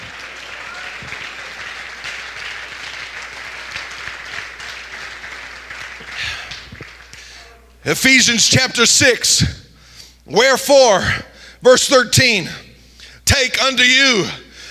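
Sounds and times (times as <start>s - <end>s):
audience clapping hands: 0.0s - 7.6s
speech: 7.9s - 9.6s, 10.3s - 12.6s, 13.3s - 14.4s.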